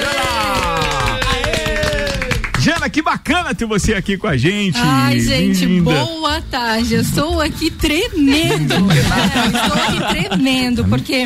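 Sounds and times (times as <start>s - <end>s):
audience applause: 0.0s - 2.9s
speech: 2.9s - 11.2s
voices or music: 2.9s - 11.2s
laughter: 8.2s - 11.0s.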